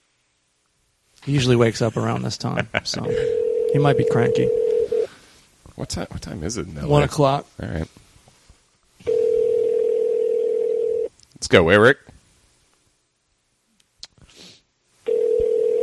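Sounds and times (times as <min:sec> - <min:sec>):
speech: 0:01.2 - 0:04.7, 0:05.8 - 0:08.0, 0:11.5 - 0:12.1
phone call ringback tone: 0:03.1 - 0:05.1, 0:09.0 - 0:11.1, 0:15.1 - 0:15.8.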